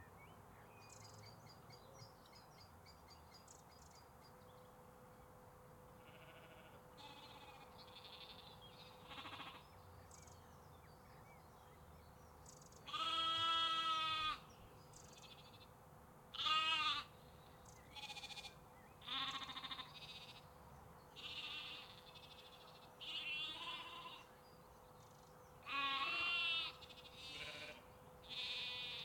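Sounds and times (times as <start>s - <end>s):
sheep and lambs bleating in the UK: 6.0s - 9.6s, 12.9s - 14.4s, 16.3s - 17.1s, 17.9s - 20.5s, 21.2s - 24.3s, 25.6s - 29.0s.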